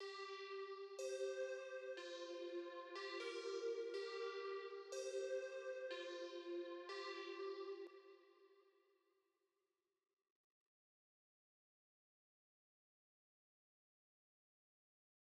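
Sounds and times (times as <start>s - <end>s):
synth pad: 0.0s - 7.8s.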